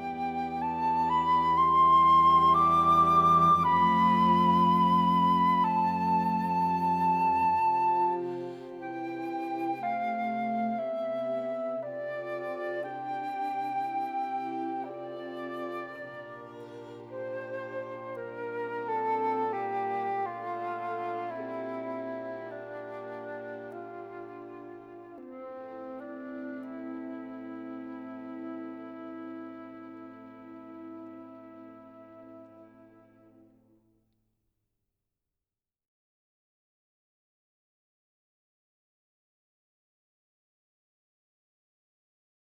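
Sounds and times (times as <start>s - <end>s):
string quartet: 0.0s - 33.5s
flute: 0.0s - 33.7s.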